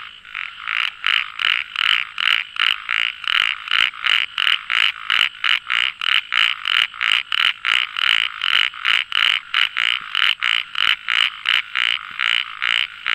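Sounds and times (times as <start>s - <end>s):
frog calling with rapid rasping croaks: 0.0s - 13.1s.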